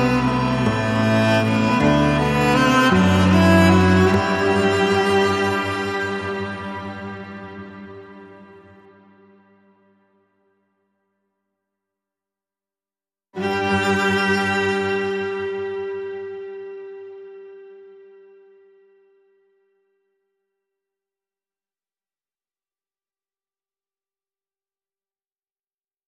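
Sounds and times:
strings: 0.0 - 9.8, 13.4 - 19.6.

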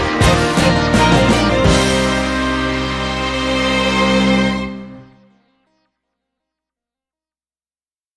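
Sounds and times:
big string beat: 0.0 - 5.3.

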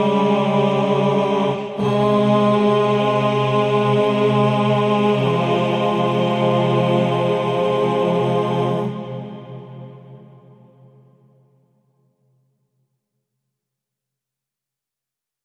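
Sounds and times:
male choir singing: 0.0 - 10.6.

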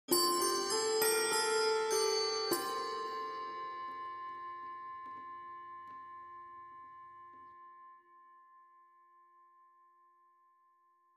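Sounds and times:
handbells playing a Christmas carol: 0.1 - 6.6.

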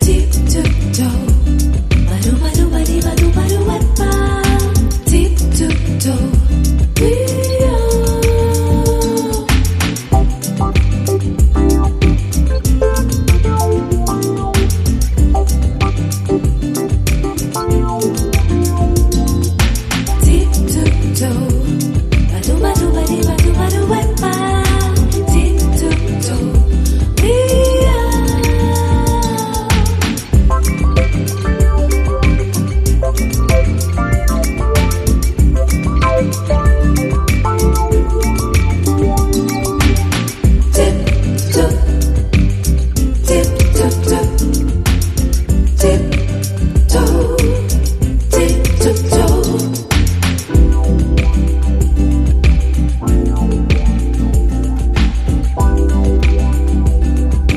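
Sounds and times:
bossa nova beach music: 0.0 - 57.5.

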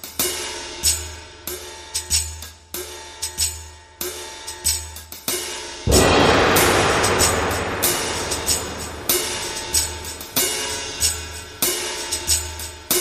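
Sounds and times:
cymbals: 5.9 - 12.9.

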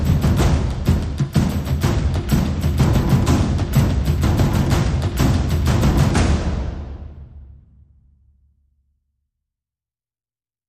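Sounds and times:
percussion: 0.0 - 8.3.

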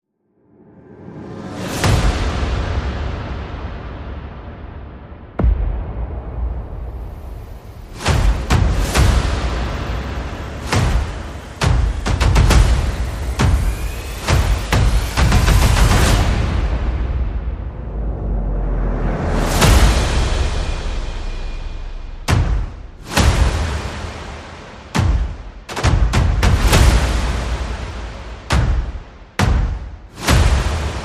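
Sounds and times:
percussion: 1.0 - 31.0
sound effects: 6.4 - 25.2.

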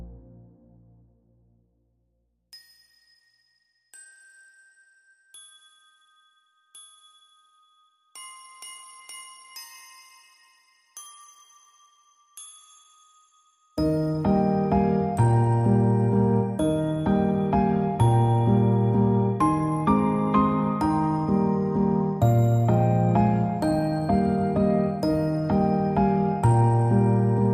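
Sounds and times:
piano: 0.0 - 1.7, 13.8 - 27.5
tinkerbells: 2.5 - 27.5.

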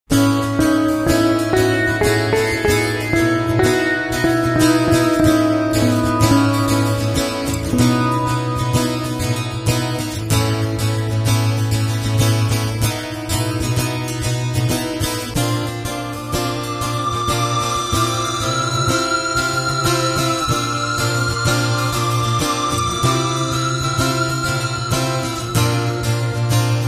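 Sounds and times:
acoustic music: 0.1 - 26.8.

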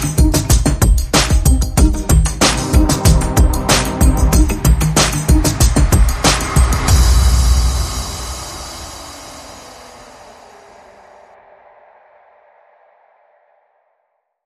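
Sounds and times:
music without strings: 0.0 - 10.0.

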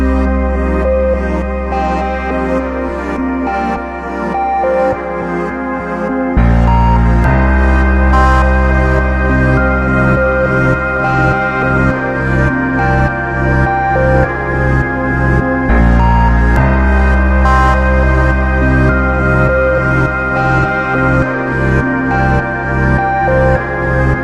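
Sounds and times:
siren: 0.0 - 24.2.

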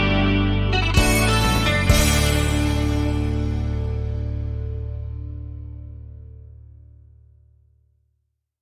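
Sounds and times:
breaking news bumper music: 0.0 - 4.8.

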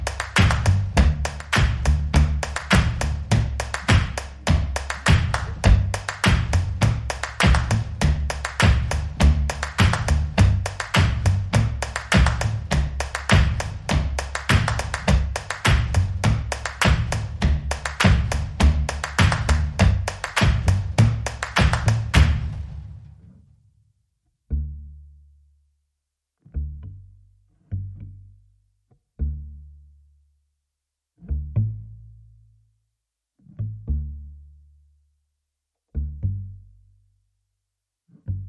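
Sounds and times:
drums: 0.0 - 23.2
bass: 0.0 - 25.8, 26.4 - 30.6, 31.2 - 38.4.

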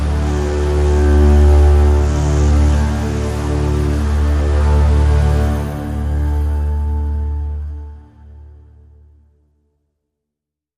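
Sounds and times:
bowed bass drone in D: 0.0 - 9.4.

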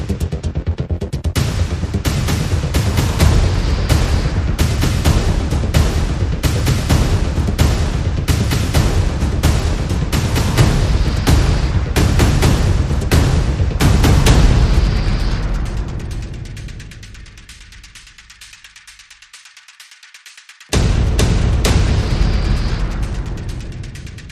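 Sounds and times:
percussion: 0.0 - 24.3.

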